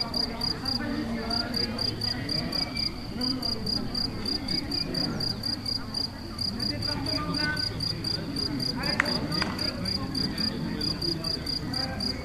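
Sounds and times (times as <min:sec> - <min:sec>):
crickets chirping in Galicia: 0:00.0 - 0:12.2.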